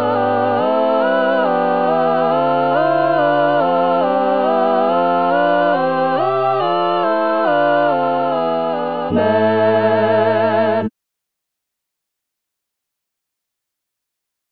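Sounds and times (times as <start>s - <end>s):
full ensemble playing: 0.1s - 10.7s.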